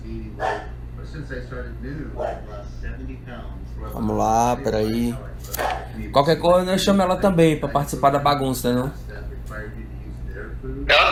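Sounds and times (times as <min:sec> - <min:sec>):
dog barking: 0:00.4 - 0:00.8, 0:02.2 - 0:02.5, 0:05.6 - 0:06.0
speech: 0:00.4 - 0:09.8.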